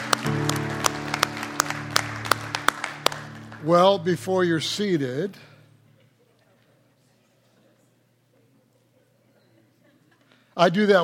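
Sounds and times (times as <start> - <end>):
audience applause: 0.0 - 4.6
speech: 3.6 - 5.5, 10.6 - 11.0.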